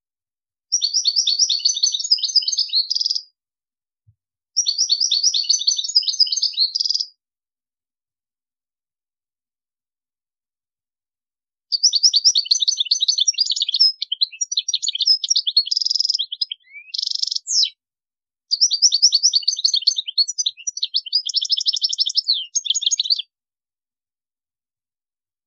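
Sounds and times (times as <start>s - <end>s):
European goldfinch twittering song: 0.7s - 3.3s, 4.6s - 7.2s, 11.7s - 17.8s, 18.5s - 23.3s.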